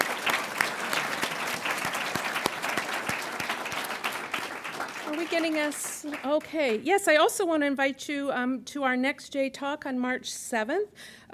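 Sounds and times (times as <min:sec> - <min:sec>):
audience applause for panel and speakers: 0:00.0 - 0:06.8
speech: 0:05.2 - 0:11.3.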